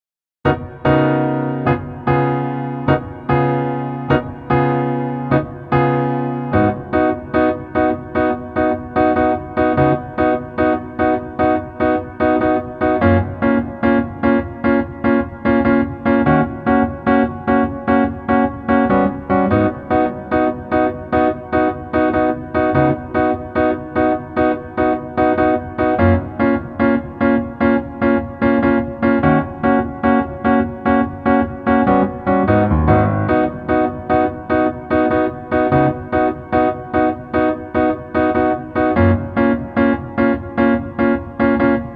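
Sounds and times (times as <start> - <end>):
piano: 0.4 - 41.9.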